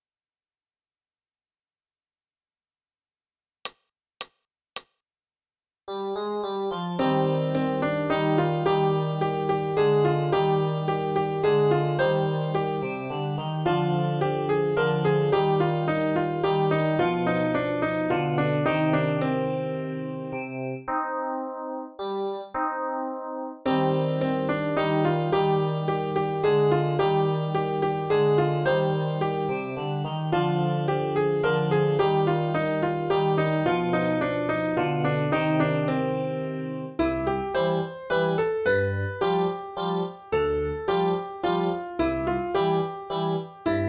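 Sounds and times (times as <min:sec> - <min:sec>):
piano: 0:05.9 - 0:43.8.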